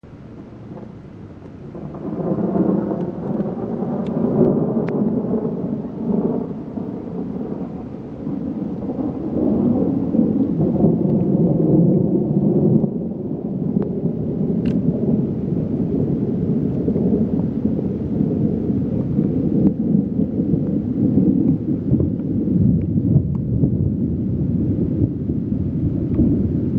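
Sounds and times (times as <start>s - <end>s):
thunder: 0.6s - 26.7s.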